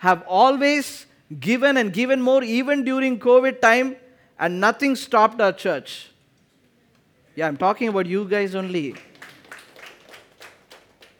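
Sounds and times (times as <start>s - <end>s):
speech: 0.0s - 6.1s, 7.4s - 9.1s
weak scattered clapping: 8.6s - 11.1s.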